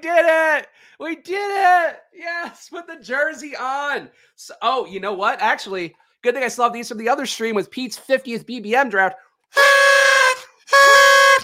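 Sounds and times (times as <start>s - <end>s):
speech: 0.0s - 11.4s
party noisemaker horn blast: 9.6s - 11.4s.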